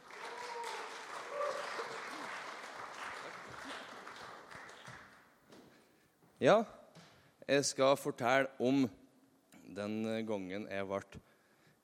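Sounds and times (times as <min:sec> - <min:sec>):
audience applause: 0:00.0 - 0:05.2
speech: 0:06.4 - 0:06.8, 0:07.5 - 0:09.0, 0:09.8 - 0:11.3.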